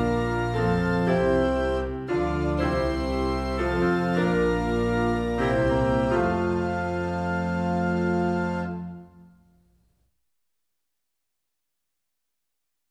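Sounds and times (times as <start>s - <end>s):
hymnal song tune: 0.0s - 9.4s.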